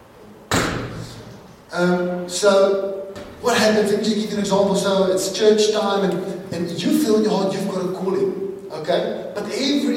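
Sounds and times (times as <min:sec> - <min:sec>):
door slamming shut: 0:00.5 - 0:01.2
speech: 0:01.7 - 0:09.9.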